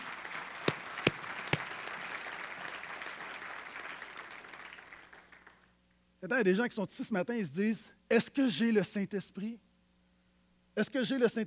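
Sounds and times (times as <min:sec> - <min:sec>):
audience applause: 0:00.0 - 0:05.6
speech: 0:06.2 - 0:09.7, 0:10.8 - 0:11.4.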